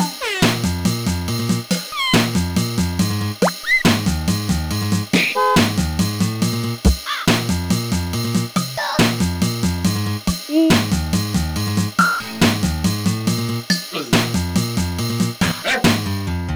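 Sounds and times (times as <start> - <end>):
bass jam: 0.4 - 16.5.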